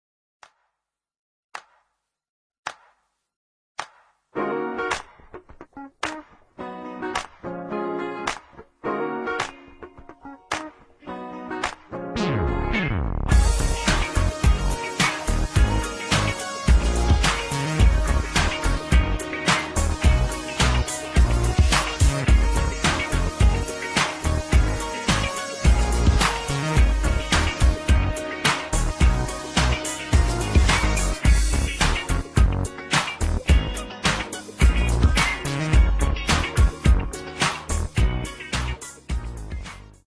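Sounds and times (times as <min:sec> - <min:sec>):
g-funk instrumental: 0:04.4 - 0:40.0.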